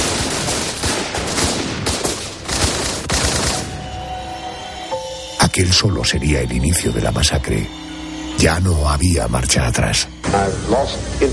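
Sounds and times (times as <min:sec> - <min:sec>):
gunfire: 0:00.0 - 0:03.8
speech: 0:05.6 - 0:11.3.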